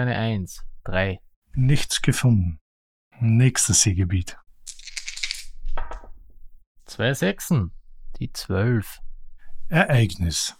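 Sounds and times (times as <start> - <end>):
speech: 0.0 - 2.6, 3.2 - 4.4, 6.9 - 9.0, 9.7 - 10.5
dice being rolled: 4.6 - 6.1.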